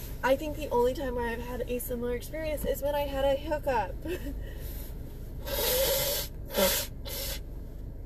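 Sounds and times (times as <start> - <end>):
speech: 0.2 - 4.8
person blowing nose: 5.4 - 7.4.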